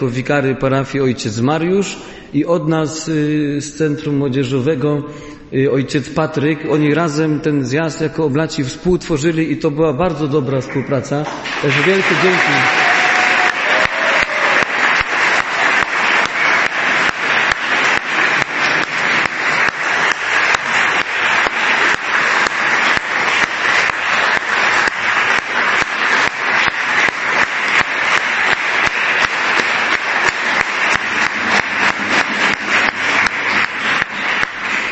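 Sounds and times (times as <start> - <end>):
speech: 0.0 - 12.9
applause from a large audience: 11.3 - 34.9.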